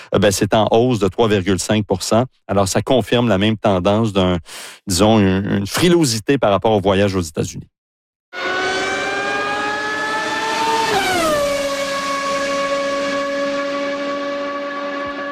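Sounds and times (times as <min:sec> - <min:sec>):
speech: 0:00.1 - 0:07.7
Formula 1 racing car engine screaming at a Canadian Grand Prix open day: 0:08.4 - 0:15.3.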